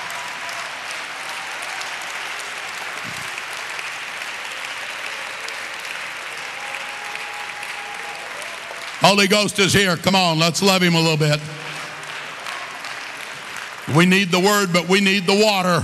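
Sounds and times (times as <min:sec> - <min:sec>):
audience clapping hands: 0:00.0 - 0:15.8
speech: 0:09.0 - 0:11.7, 0:14.0 - 0:15.8.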